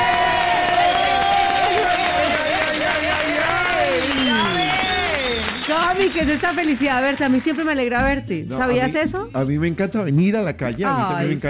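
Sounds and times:
studio applause welcoming a guest: 0:00.0 - 0:08.0
speech: 0:05.7 - 0:11.4.

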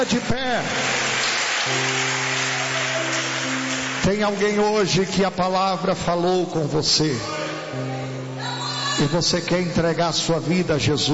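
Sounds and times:
speech: 0:00.0 - 0:00.9, 0:01.6 - 0:02.2, 0:04.0 - 0:07.8, 0:09.0 - 0:11.1
audience applauding: 0:00.0 - 0:05.6.

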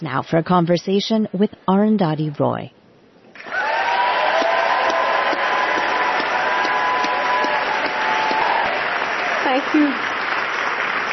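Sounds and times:
speech: 0:00.0 - 0:02.8, 0:09.6 - 0:10.1
audience applause at the Sydney Goldstein Theater in San Francisco: 0:03.4 - 0:11.1.

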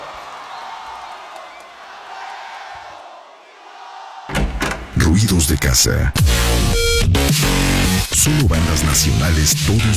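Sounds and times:
crowd cheering and applauding: 0:00.0 - 0:04.4
speech: 0:05.1 - 0:09.9.

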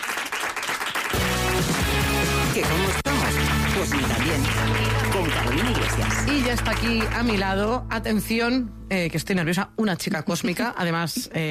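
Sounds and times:
studio audience applause: 0:00.0 - 0:07.8
speech: 0:02.6 - 0:03.1, 0:03.8 - 0:11.4.

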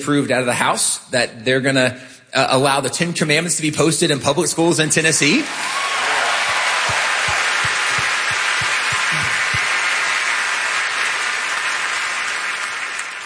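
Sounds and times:
speech: 0:00.0 - 0:06.0
audience applause: 0:05.4 - 0:13.2.

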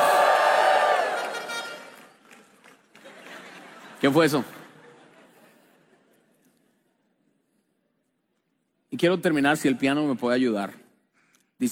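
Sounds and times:
audience shouting for joy: 0:00.0 - 0:01.9
laughter: 0:02.9 - 0:06.4
speech: 0:04.0 - 0:04.6, 0:09.0 - 0:10.8.

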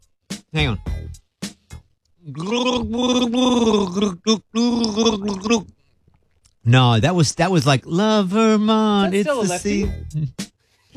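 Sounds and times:
speech: 0:00.5 - 0:01.2, 0:02.3 - 0:05.6, 0:06.7 - 0:10.4
person gargling a tune: 0:02.3 - 0:05.7, 0:10.1 - 0:10.4.

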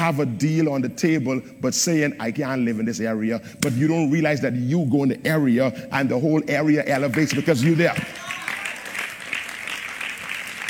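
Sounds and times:
speech: 0:00.0 - 0:08.3
audience applause at a sermon: 0:07.3 - 0:10.6.

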